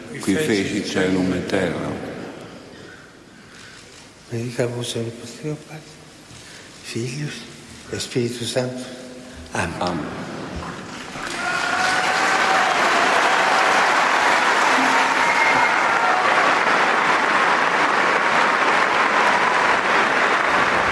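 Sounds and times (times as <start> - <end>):
speech: 0.1 - 2.0, 4.3 - 6.0, 6.9 - 10.3
large audience applause: 11.1 - 20.8
faint voices and cheers: 11.2 - 20.8.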